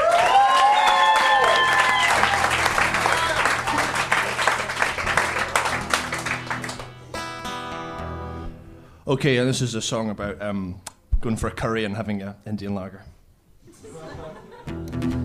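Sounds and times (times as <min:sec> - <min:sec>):
whoops and cheering voices: 0:00.0 - 0:03.9
audience applause: 0:00.0 - 0:07.1
laughter: 0:01.9 - 0:05.8, 0:13.6 - 0:14.9
speech: 0:09.1 - 0:13.2.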